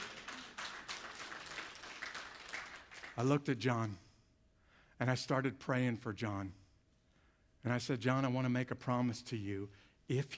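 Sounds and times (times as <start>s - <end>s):
church audience applause: 0.0s - 3.2s
speech: 3.2s - 4.0s, 5.0s - 6.6s, 7.6s - 10.3s.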